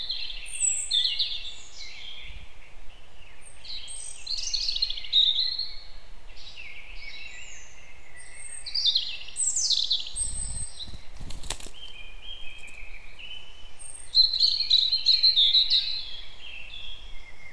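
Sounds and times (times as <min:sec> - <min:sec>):
European robin Erithacus rubecula singing: 0:00.0 - 0:17.5.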